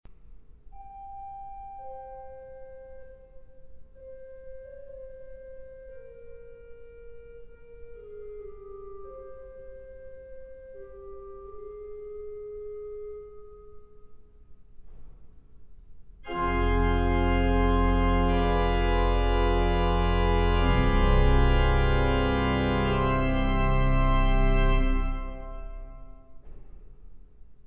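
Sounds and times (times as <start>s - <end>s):
organ: 16.3s - 26.4s.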